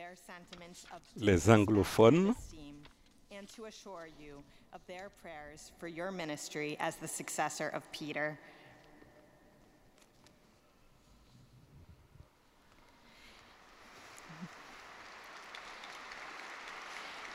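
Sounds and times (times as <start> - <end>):
speech: 0.2 - 8.6
large crowd applauding: 13.5 - 17.3.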